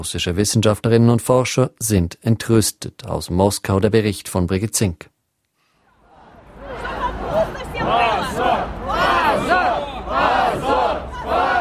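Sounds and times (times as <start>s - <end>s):
speech: 0.0s - 5.1s
protesters shouting outside the State Duma in Moscow: 5.9s - 11.5s.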